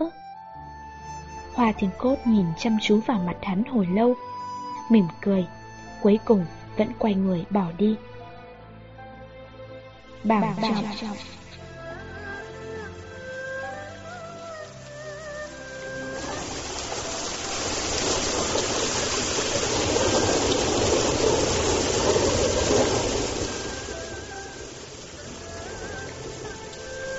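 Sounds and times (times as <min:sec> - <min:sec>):
soft melodic music: 0:00.0 - 0:21.1, 0:22.0 - 0:27.1
speech: 0:01.6 - 0:04.3, 0:04.9 - 0:08.1, 0:10.2 - 0:11.4
heavy rain: 0:10.2 - 0:27.1.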